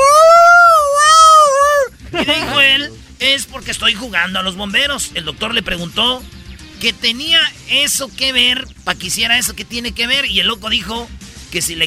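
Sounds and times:
person imitating a dog howling: 0:00.0 - 0:01.9
laughter: 0:01.6 - 0:03.0
speech: 0:02.8 - 0:11.8.

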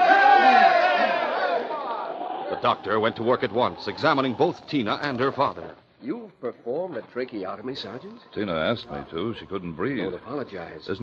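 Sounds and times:
crowd of villagers cheering: 0:00.0 - 0:04.5
speech: 0:02.6 - 0:11.0.

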